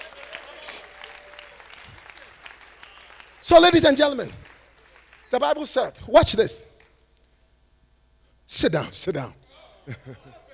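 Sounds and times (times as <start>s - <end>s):
audience clapping: 0.0s - 5.9s, 6.7s - 7.0s
speech: 3.5s - 4.5s, 5.3s - 6.7s, 8.5s - 10.4s
laughter: 9.7s - 10.5s.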